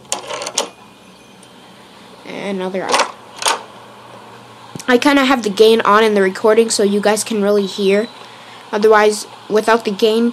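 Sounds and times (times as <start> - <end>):
front door opening: 0.0 - 1.5, 2.7 - 3.7
speech: 2.5 - 3.1, 4.9 - 10.3.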